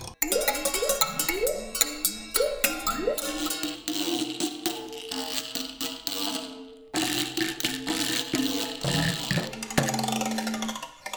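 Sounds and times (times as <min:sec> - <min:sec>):
scraping: 0:00.2 - 0:11.0.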